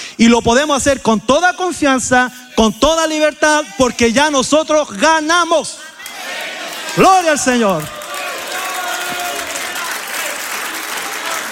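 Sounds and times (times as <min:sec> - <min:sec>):
speech: 0:00.2 - 0:05.9, 0:07.0 - 0:08.0
audience applause: 0:06.0 - 0:11.5.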